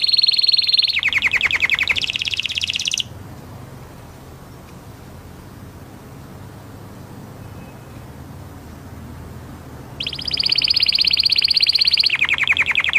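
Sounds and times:
orange canary singing in trills: 0.0s - 3.1s, 9.9s - 12.9s.

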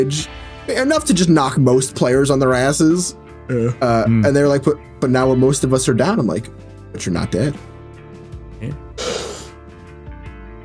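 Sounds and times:
speech: 0.0s - 7.7s, 8.6s - 8.8s
loud forceful yawn: 9.0s - 9.6s.

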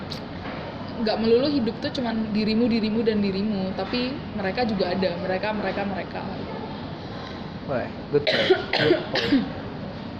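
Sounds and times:
speech: 1.0s - 6.6s, 7.7s - 9.6s
cough: 8.2s - 9.6s.

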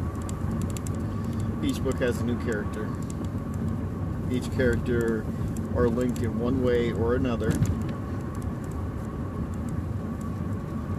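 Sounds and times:
faint steady hum inside a car: 0.0s - 10.9s
interior car engine and road rumble: 0.0s - 10.9s
speech: 1.6s - 3.2s, 4.3s - 7.9s.

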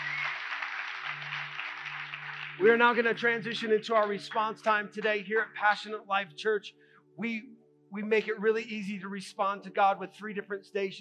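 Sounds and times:
audience hand clapping: 0.0s - 5.6s
speech: 2.6s - 11.0s.

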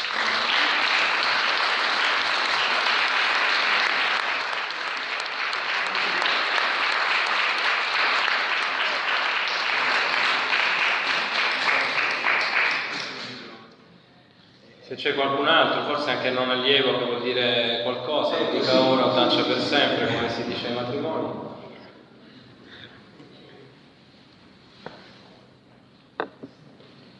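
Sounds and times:
audience applause: 0.0s - 13.4s
speech: 15.0s - 21.6s.

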